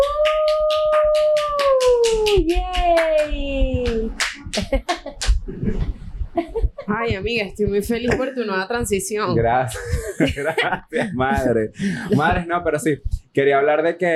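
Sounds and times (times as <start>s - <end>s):
group hand clapping in applause: 0.0s - 5.9s
laughter: 4.4s - 7.0s, 9.7s - 12.5s
speech: 4.6s - 5.8s, 6.9s - 14.1s.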